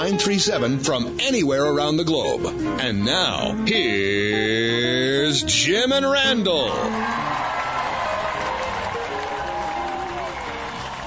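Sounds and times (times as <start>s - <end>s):
speech: 0.0s - 7.4s
studio audience applause: 6.8s - 11.0s.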